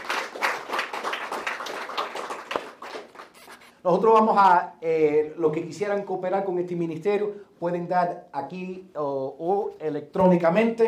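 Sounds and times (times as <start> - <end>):
crowd applauding: 0.0 - 3.5
speech: 3.8 - 10.8.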